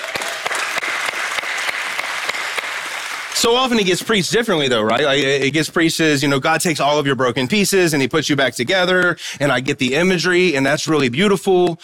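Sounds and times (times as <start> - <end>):
audience clapping: 0.0 - 6.0
speech: 3.4 - 11.8.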